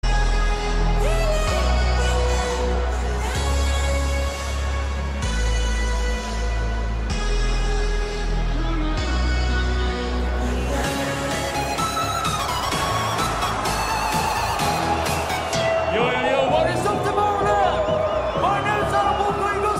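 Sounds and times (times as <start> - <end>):
trance music at a concert: 0.0 - 19.7.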